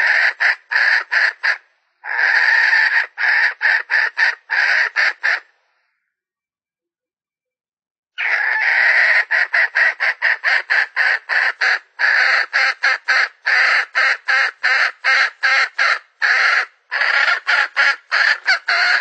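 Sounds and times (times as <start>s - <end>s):
Red junglefowl hen cackling: 0.0s - 5.6s, 8.2s - 18.9s.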